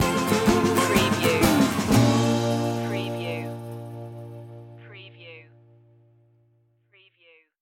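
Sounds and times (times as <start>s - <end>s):
music stinger: 0.0s - 4.9s.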